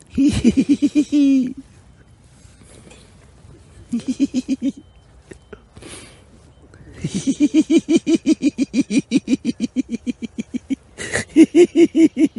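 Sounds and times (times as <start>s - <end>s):
person laughing: 0.0s - 1.7s, 3.9s - 5.5s, 7.0s - 12.3s.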